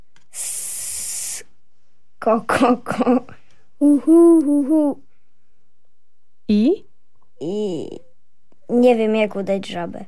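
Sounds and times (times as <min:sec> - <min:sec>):
voice imitating a snake hiss: 0:00.3 - 0:01.6
speech: 0:02.2 - 0:05.0, 0:06.5 - 0:08.0, 0:08.7 - 0:10.0.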